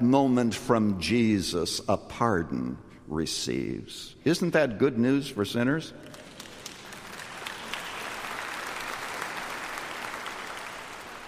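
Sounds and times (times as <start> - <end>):
speech: 0.1 - 6.2
crowd audience clapping: 6.0 - 11.2.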